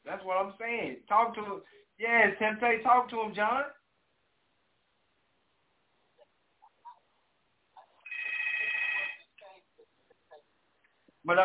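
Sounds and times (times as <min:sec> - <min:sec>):
speech: 0:00.1 - 0:03.8, 0:11.2 - 0:11.4
phone ringing: 0:08.0 - 0:09.4.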